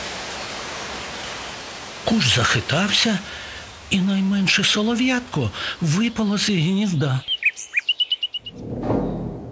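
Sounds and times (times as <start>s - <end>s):
speech: 2.1s - 7.7s
strong wind blowing: 8.4s - 9.5s.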